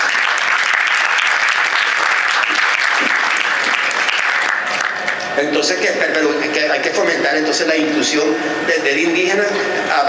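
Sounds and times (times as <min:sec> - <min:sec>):
audience applause: 0:00.0 - 0:05.3
speech: 0:05.4 - 0:10.0.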